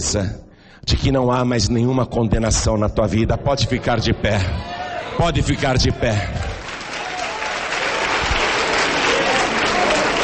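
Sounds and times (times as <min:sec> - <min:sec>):
speech: 0:00.0 - 0:06.6
audience applauding: 0:05.5 - 0:10.2.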